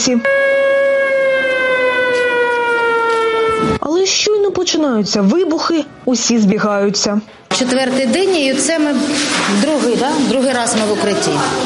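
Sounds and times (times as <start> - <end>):
speech: 0.1 - 0.4, 3.7 - 11.6
air raid siren: 0.2 - 3.8.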